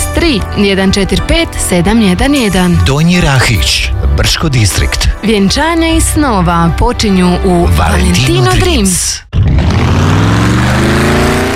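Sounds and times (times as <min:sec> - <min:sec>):
speech: 0:00.2 - 0:09.4
car engine revving on INA Classmaster fuel: 0:09.3 - 0:11.5.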